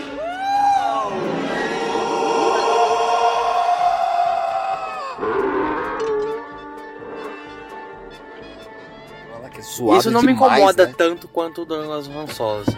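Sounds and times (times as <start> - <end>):
altered movie scream sound effect: 0.0 - 8.6
speech: 9.8 - 12.7.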